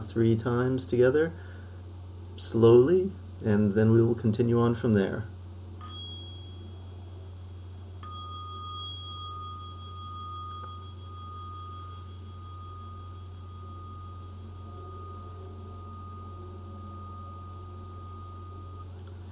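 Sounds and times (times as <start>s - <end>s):
speech: 0.1s - 1.5s, 2.4s - 5.3s
mindfulness bell being rung: 5.8s - 7.1s, 8.0s - 19.0s.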